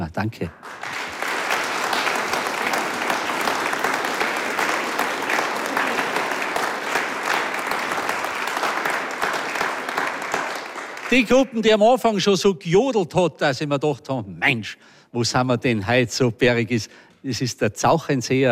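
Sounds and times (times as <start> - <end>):
speech: 0.1 - 0.8, 11.1 - 18.4
audience applause: 0.6 - 11.7.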